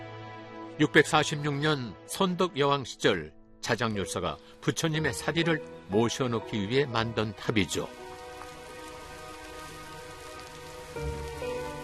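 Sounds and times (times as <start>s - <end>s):
speech: 0.8s - 8.0s, 11.0s - 11.2s
sudden rain on a hard surface at a mountain temple: 4.7s - 11.8s.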